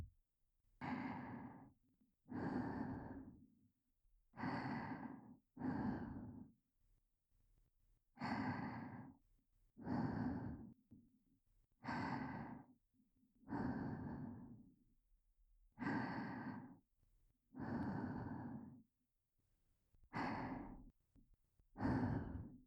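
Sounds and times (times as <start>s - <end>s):
breathing only: 0.8s - 1.7s, 2.3s - 3.4s, 4.4s - 6.5s, 8.2s - 9.2s, 9.8s - 10.8s, 11.8s - 12.8s, 13.4s - 14.7s, 15.8s - 16.8s, 17.6s - 18.9s, 20.2s - 20.9s, 21.8s - 22.6s.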